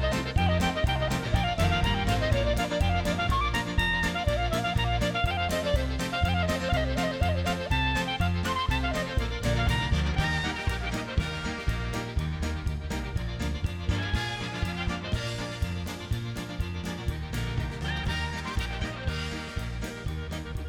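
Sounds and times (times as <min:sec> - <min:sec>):
clarinet playing a polka: 0:00.0 - 0:20.6.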